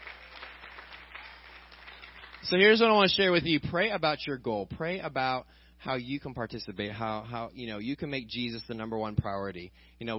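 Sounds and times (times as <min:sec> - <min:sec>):
audience clapping: 0:00.0 - 0:03.0
speech: 0:02.4 - 0:10.1.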